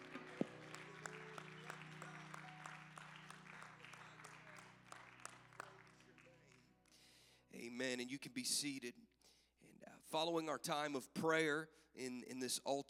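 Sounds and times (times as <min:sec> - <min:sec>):
audience clapping hands: 0:00.0 - 0:07.0
speech: 0:07.8 - 0:09.1, 0:10.1 - 0:12.8.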